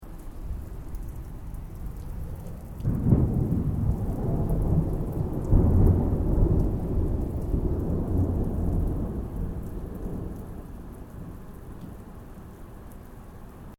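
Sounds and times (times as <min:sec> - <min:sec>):
distant thunder: 0:01.7 - 0:11.5.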